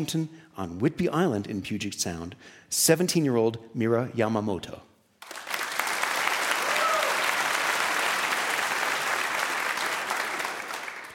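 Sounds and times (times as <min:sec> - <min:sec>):
speech: 0:00.0 - 0:04.9
audience applause welcoming a 17-year-old violinist onto a stage: 0:05.2 - 0:11.1.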